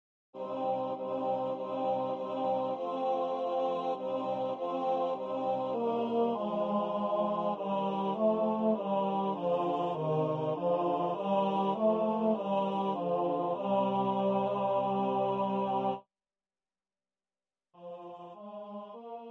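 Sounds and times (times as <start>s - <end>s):
tenor singing: 0.4s - 16.0s.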